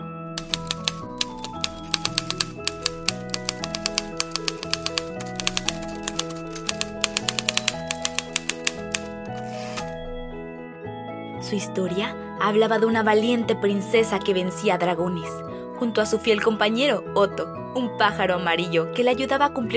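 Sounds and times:
typewriter keys clacking: 0.4 - 9.8
soft stepping musical tone: 0.4 - 10.7
speech: 11.5 - 19.7.

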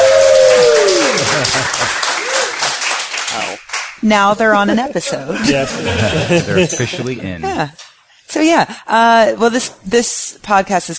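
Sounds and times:
live audience applauding: 0.0 - 4.0
laughter: 1.0 - 2.1, 4.4 - 7.7
speech: 4.0 - 10.9.

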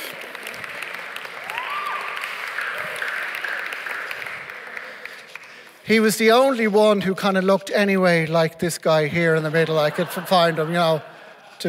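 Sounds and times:
audience applause: 0.0 - 5.8
speech: 5.9 - 11.6
laughter: 9.4 - 11.6.

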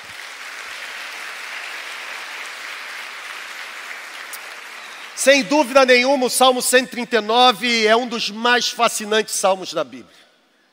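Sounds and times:
audience applauding: 0.0 - 6.5
speech: 5.2 - 10.3.

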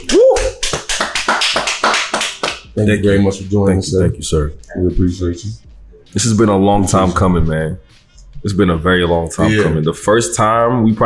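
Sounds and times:
clapping: 0.0 - 2.7
speech: 2.8 - 11.0.

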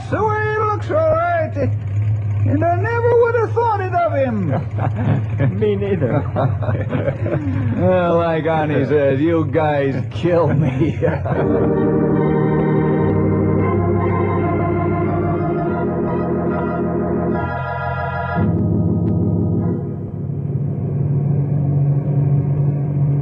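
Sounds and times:
amphibious propeller plane engine droning in flight: 0.0 - 23.2
speech: 0.1 - 12.6
laughter: 3.8 - 12.4.

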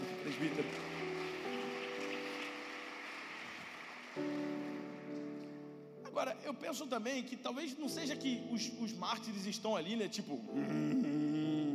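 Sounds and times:
audience applause: 0.0 - 5.6
speech: 0.3 - 1.0, 6.2 - 11.2.

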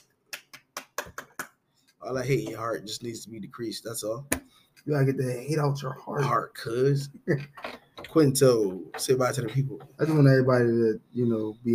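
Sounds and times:
people clapping: 0.0 - 1.6
speech: 2.0 - 11.7.

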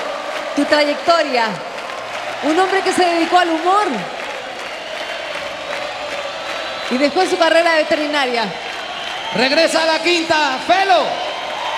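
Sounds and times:
large audience applause: 0.0 - 11.7
speech: 0.6 - 1.7, 2.4 - 4.2, 6.9 - 8.6, 9.3 - 11.2.

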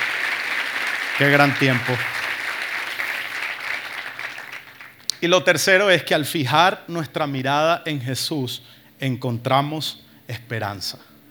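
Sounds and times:
audience applause: 0.0 - 5.0
speech: 1.2 - 2.2, 5.2 - 11.1.

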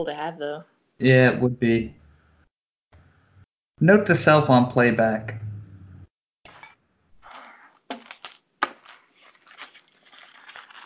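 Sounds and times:
speech: 0.0 - 2.0, 3.8 - 5.5
dice clattering across a tabletop: 7.3 - 10.8.

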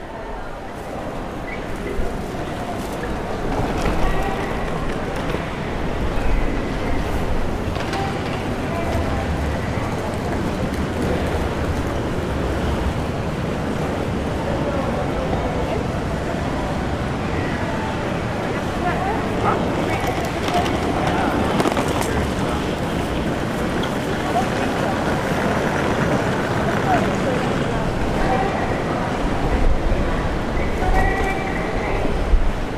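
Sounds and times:
crowd voices murmuring on a Tokyo street: 0.0 - 32.7
traffic on a Tokyo street: 0.0 - 32.7.

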